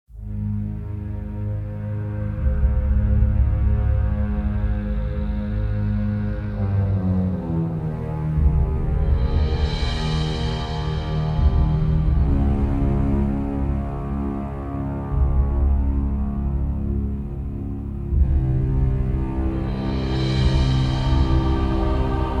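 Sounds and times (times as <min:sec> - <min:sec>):
underscore music at 105 BPM: 0:00.1 - 0:22.3.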